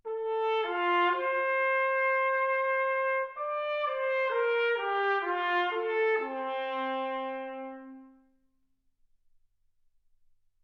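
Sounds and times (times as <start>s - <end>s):
trumpet: 0.0s - 8.5s.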